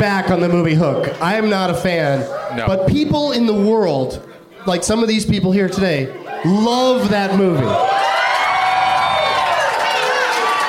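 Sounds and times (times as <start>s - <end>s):
speech: 0.0s - 7.9s
live crowd cheering and whooping: 6.2s - 10.6s
applause: 8.0s - 10.6s.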